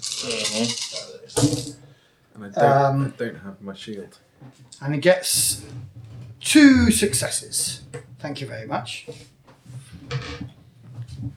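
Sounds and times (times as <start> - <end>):
dice rattling: 0.0 - 1.8
speech: 0.0 - 1.8, 2.4 - 9.4.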